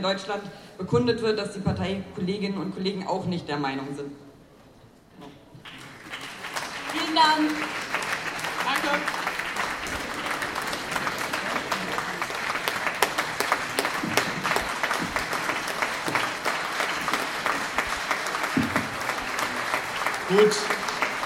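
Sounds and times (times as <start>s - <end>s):
speech: 0.0s - 4.3s, 7.0s - 7.9s, 8.8s - 9.2s, 20.3s - 20.8s
applause: 5.6s - 21.2s.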